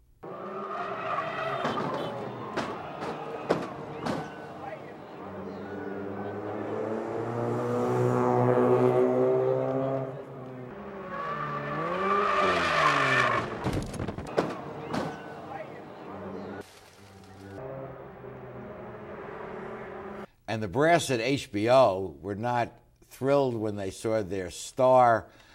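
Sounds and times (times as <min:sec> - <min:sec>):
race car tires squealing during qualifying: 0:00.2 - 0:20.3
race car rolling over with sharp cracking hits: 0:00.9 - 0:05.0, 0:12.4 - 0:15.4
speech: 0:20.5 - 0:25.5.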